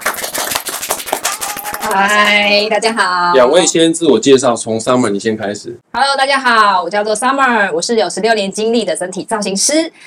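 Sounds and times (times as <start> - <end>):
welcoming applause: 0.0 - 2.4
speech: 1.8 - 10.0.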